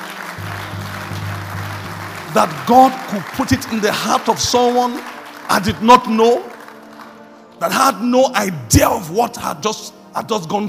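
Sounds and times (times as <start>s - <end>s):
audience clapping: 0.0s - 7.8s
speech: 2.3s - 6.5s, 7.6s - 10.6s.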